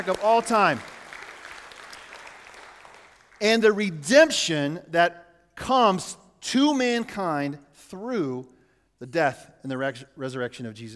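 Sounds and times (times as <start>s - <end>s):
speech: 0.0s - 0.9s, 3.4s - 10.9s
audience clapping: 0.0s - 3.4s.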